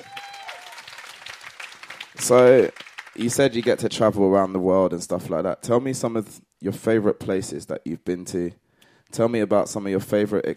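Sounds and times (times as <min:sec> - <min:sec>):
applause: 0:00.0 - 0:03.8
speech: 0:02.2 - 0:10.5.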